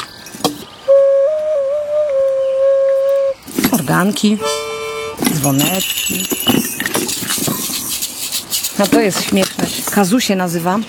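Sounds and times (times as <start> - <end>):
ocarina being played: 0.8 - 6.9
speech: 3.9 - 4.6, 5.3 - 6.7, 8.8 - 10.8.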